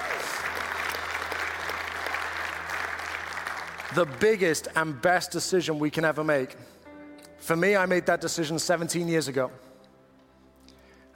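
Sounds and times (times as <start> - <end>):
audience clapping: 0.0 - 4.7
speech: 3.9 - 6.8, 7.4 - 9.7.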